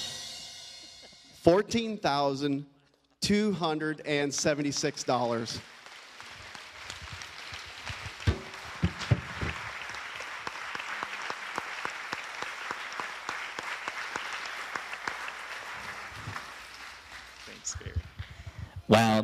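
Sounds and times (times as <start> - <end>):
speech: 1.5 - 2.7, 3.3 - 5.7
audience applause: 5.0 - 19.1.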